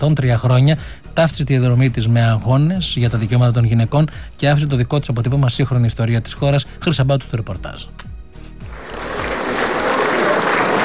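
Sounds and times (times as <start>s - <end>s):
speech: 0.0s - 8.1s
crowd applauding at a funeral: 8.7s - 10.8s.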